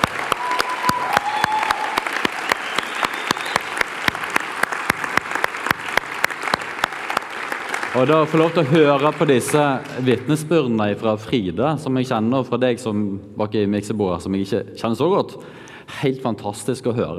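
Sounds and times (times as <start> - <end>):
audience applause: 0.0 - 10.5
faint whistles or cheers from the audience: 0.3 - 3.9
speech: 7.9 - 17.1.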